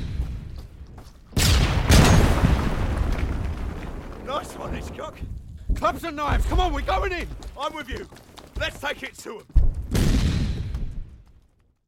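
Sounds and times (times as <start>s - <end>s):
Mills bomb grenade explosion: 1.4s - 5.1s, 9.6s - 11.2s
speech: 4.7s - 9.6s.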